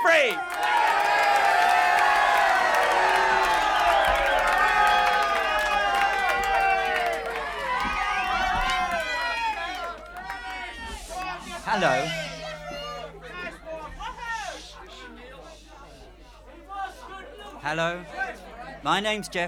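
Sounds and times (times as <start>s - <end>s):
audience applause: 0.0s - 13.2s
speech: 11.8s - 12.2s, 17.7s - 18.2s, 18.8s - 19.4s.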